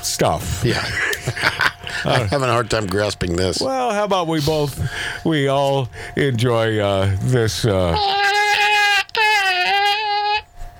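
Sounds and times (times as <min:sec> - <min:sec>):
speech: 0:00.2 - 0:08.3
laughter: 0:00.6 - 0:03.2
person imitating a cat in heat meowing: 0:07.9 - 0:10.5.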